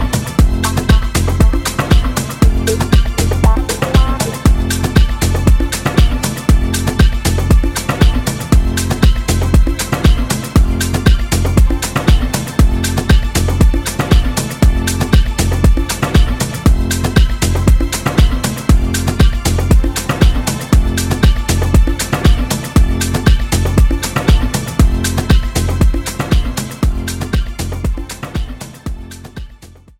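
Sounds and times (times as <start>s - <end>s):
instrumental music: 0.0s - 29.9s.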